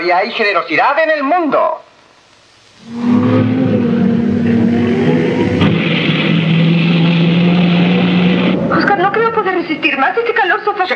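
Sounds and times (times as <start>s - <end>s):
speech: 0.0s - 1.9s, 2.8s - 3.3s, 9.8s - 10.9s
car engine warming up: 2.8s - 9.8s.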